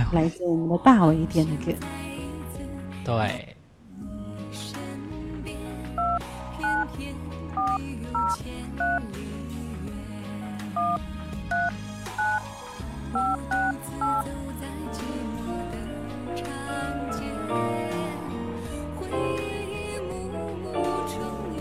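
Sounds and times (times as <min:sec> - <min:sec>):
steady music: 0:00.0 - 0:21.6
speech: 0:00.1 - 0:02.0, 0:03.1 - 0:03.5, 0:10.8 - 0:11.8
telephone keypad dialing tones: 0:06.0 - 0:06.9, 0:07.6 - 0:09.0, 0:10.8 - 0:12.4, 0:13.2 - 0:14.3.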